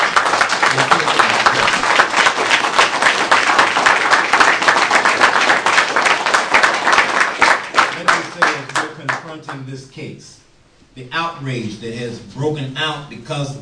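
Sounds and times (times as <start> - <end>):
crowd applause: 0.0 - 9.6
speech: 11.0 - 13.6.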